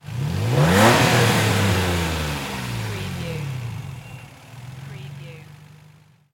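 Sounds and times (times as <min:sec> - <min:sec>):
Nissan 350Z engine single rev: 0:00.0 - 0:06.3.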